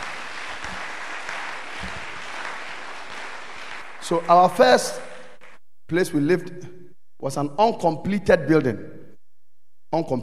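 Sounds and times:
crowd applauding: 0:00.0 - 0:05.6
speech: 0:04.1 - 0:05.1, 0:05.9 - 0:09.0, 0:09.9 - 0:10.2.

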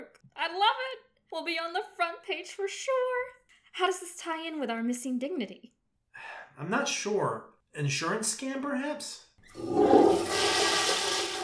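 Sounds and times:
speech: 0:00.4 - 0:10.6
toilet flushing: 0:09.4 - 0:11.4.

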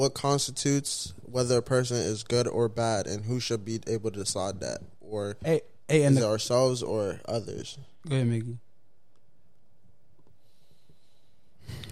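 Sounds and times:
speech: 0:00.0 - 0:08.6
speaker's deep breath before talking: 0:10.4 - 0:11.9.

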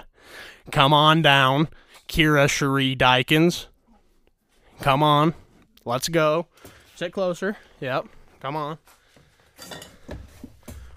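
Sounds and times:
speech: 0:00.7 - 0:03.7, 0:04.8 - 0:09.0, 0:09.6 - 0:10.2
broken glass clinking: 0:09.6 - 0:10.0.

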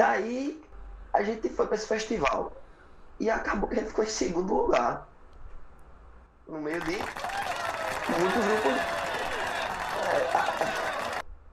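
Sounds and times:
speech: 0:00.0 - 0:02.6, 0:03.2 - 0:05.1, 0:06.5 - 0:09.0
audience applause: 0:06.7 - 0:11.2
laughter: 0:06.7 - 0:11.2.

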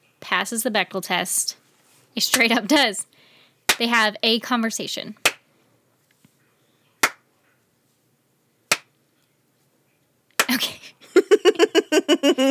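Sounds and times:
speech: 0:00.3 - 0:01.6, 0:02.2 - 0:03.1, 0:03.8 - 0:05.2
slow clap: 0:10.4 - 0:10.6
laughter: 0:10.5 - 0:12.4.

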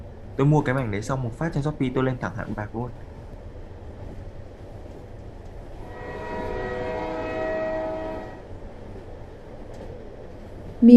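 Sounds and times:
train rumbling: 0:00.0 - 0:10.9
speech: 0:00.4 - 0:03.1
train horn blast: 0:05.7 - 0:08.6.

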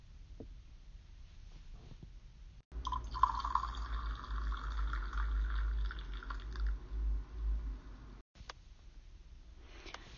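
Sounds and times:
coffee poured into a mug: 0:02.8 - 0:06.8.

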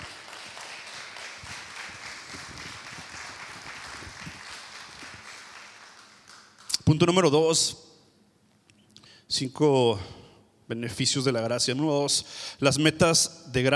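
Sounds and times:
audience applause: 0:00.0 - 0:06.8
speech: 0:06.9 - 0:07.9, 0:09.4 - 0:13.7.

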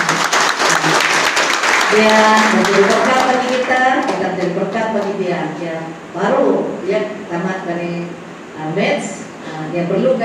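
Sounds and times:
crowd applauding: 0:00.0 - 0:05.2
speech: 0:01.9 - 0:10.2.

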